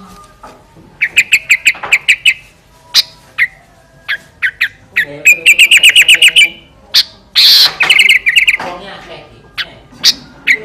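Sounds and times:
sooty-headed bulbul singing: 1.0 - 8.8, 9.5 - 10.6.

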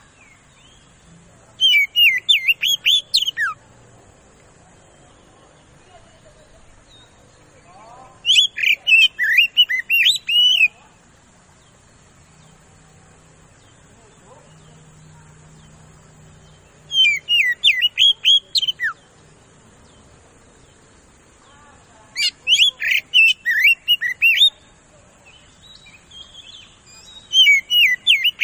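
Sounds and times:
Oriental magpie-robin singing fast loud whistled lure song: 1.6 - 3.6, 8.2 - 10.8, 16.9 - 19.0, 22.2 - 24.6, 25.7 - 28.4.

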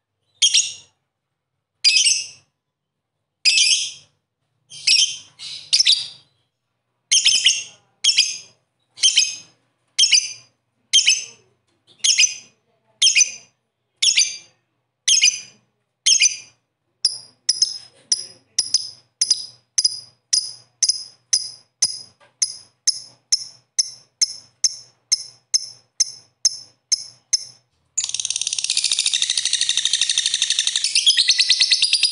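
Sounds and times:
bird chirping: 0.2 - 1.0, 3.4 - 32.1.

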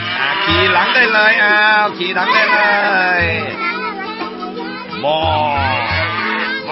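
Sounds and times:
black cow mooing: 0.0 - 1.5, 5.6 - 6.6
speech: 0.5 - 3.7, 5.0 - 5.8.

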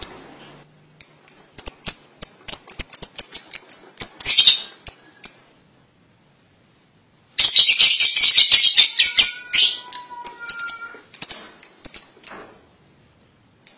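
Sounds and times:
lovebird chirps: 0.0 - 0.3, 1.0 - 5.6, 7.4 - 12.6.

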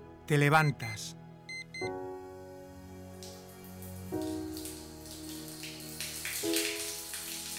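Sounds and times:
speech: 0.3 - 1.2
shower water running: 2.9 - 7.5.

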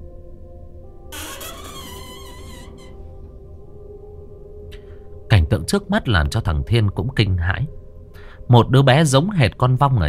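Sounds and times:
closed room door creaking open, pushed lightly by hand: 1.1 - 4.0
speech: 5.5 - 7.8, 8.5 - 10.0.

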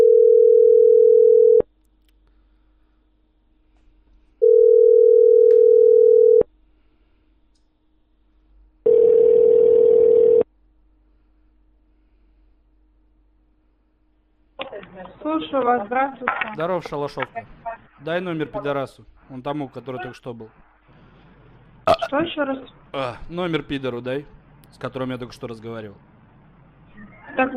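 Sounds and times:
telephone tones while a call back is placed: 0.0 - 1.7, 4.4 - 6.5, 8.8 - 10.5
speech: 15.4 - 20.7, 22.1 - 26.1, 27.4 - 27.5.

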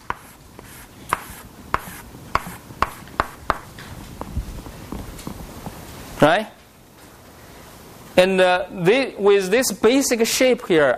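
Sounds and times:
pen tapping while drawing a parallelogram by hand: 0.0 - 3.7
speech: 6.2 - 6.6, 8.2 - 10.9.

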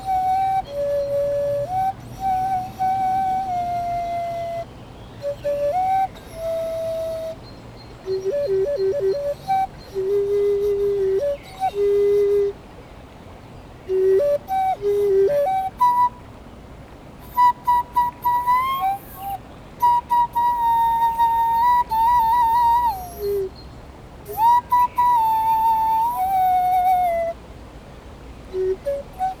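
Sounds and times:
Common Nightingale singing to defend its territory by the Leysse river in France: 0.0 - 12.6, 13.9 - 16.2, 17.2 - 27.4, 28.5 - 29.3.

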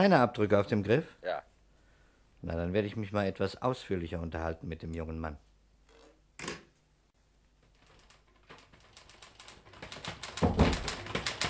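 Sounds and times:
speech: 0.0 - 1.5, 2.4 - 5.5
typewriter keys clattering: 7.6 - 11.4.

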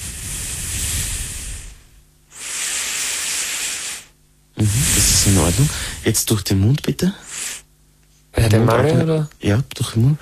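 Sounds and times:
deep breathing through the nose: 0.0 - 6.1, 7.2 - 7.7
speech: 4.6 - 7.3, 8.5 - 10.2.

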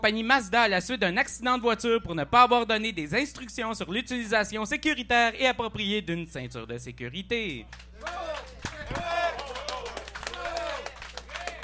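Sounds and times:
speech: 0.0 - 8.3
audience clapping: 7.7 - 11.6.

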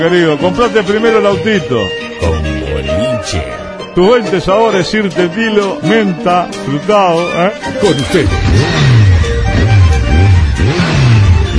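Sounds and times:
speech: 0.0 - 9.0
motorcycle engine revving: 7.6 - 11.5.

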